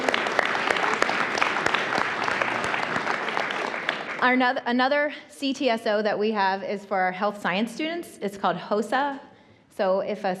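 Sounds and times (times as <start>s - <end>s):
audience applause: 0.0s - 4.4s
speech: 4.2s - 10.3s.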